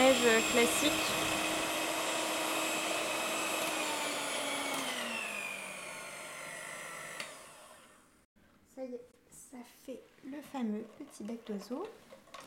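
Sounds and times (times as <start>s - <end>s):
electric mixer whipping chickpea water into foam: 0.0s - 8.3s
speech: 0.2s - 1.5s, 9.5s - 12.1s.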